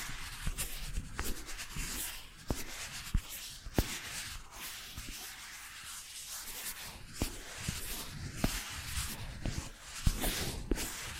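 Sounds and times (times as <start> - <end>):
bristles brushing across ear and face: 0.0 - 11.1.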